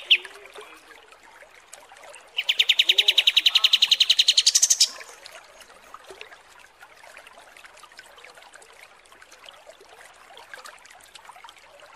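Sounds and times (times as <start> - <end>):
kapas tembak song trill: 0.0 - 0.3, 2.4 - 5.0.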